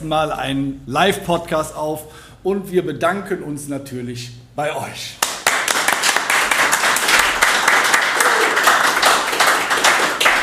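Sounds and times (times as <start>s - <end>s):
speech: 0.0s - 5.2s
live audience clapping: 5.2s - 10.4s.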